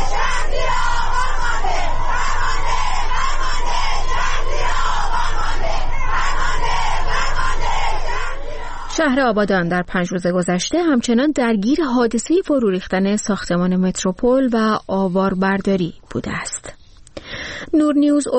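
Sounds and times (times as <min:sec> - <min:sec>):
protest crowd chanting slogans: 0:00.0 - 0:09.2
speech: 0:09.0 - 0:18.3.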